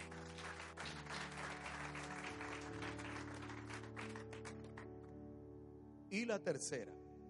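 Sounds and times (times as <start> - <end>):
audience applause: 0.0 - 4.9
speech: 6.1 - 7.1.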